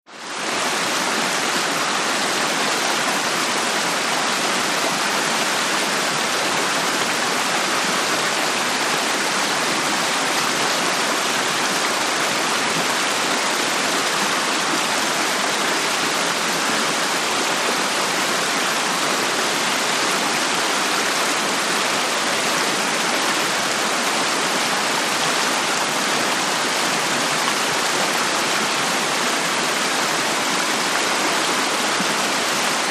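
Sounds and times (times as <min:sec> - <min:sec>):
river rushing: 0:00.1 - 0:32.8.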